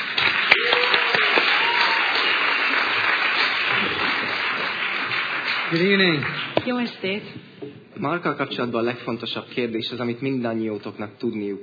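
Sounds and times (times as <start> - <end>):
audience applauding a guest coming onto the stage: 0.0 - 7.1
speech: 5.7 - 11.6.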